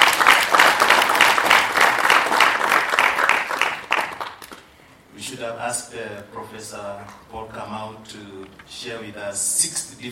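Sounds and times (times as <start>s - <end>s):
crowd clapping: 0.0s - 4.7s
speech: 5.7s - 10.1s.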